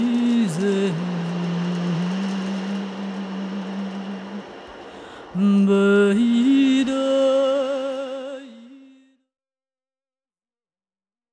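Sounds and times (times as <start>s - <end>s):
ocean drum: 0.0s - 8.2s.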